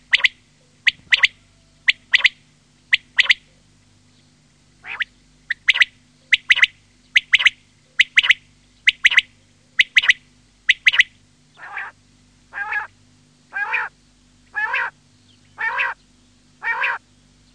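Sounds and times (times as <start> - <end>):
quail repeating clipped three-note phrases: 0.1 - 3.6, 4.8 - 16.0, 16.6 - 17.0.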